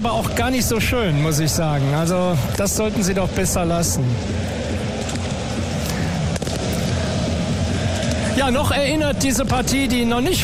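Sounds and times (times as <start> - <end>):
speech: 0.0 - 4.6, 8.4 - 10.4
fireworks going off in stadium: 1.9 - 9.8.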